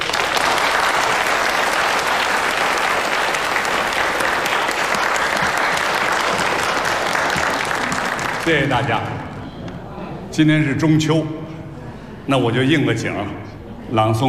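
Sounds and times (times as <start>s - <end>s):
audience applause: 0.0s - 9.5s
speech: 8.5s - 9.2s, 10.4s - 11.4s, 12.3s - 14.2s.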